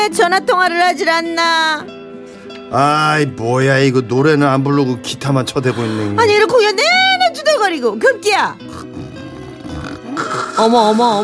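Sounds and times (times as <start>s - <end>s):
speech: 0.0s - 2.0s, 2.7s - 6.9s, 7.7s - 8.9s, 10.6s - 11.2s
man snoring: 8.7s - 10.7s.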